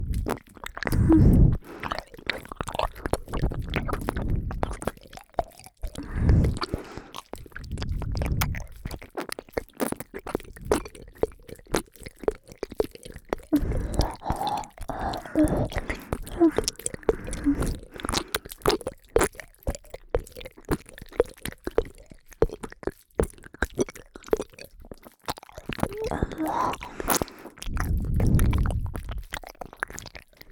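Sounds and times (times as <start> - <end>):
ASMR ear licking on the right side: 0.0 - 30.4.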